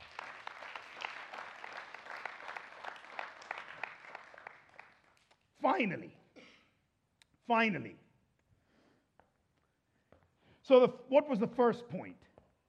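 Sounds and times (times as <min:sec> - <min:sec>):
audience applause: 0:00.0 - 0:05.3
speech: 0:05.6 - 0:06.2, 0:07.5 - 0:08.0, 0:10.7 - 0:12.2.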